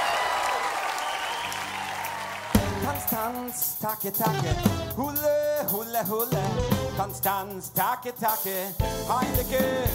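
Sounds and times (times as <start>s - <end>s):
audience applause welcoming performers onto the stage at a Hanukkah-themed show: 0.0s - 3.4s
speech: 2.8s - 9.9s.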